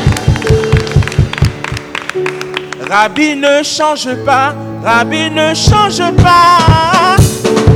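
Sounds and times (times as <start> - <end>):
people clapping: 0.0 - 3.3
speech: 2.9 - 7.6.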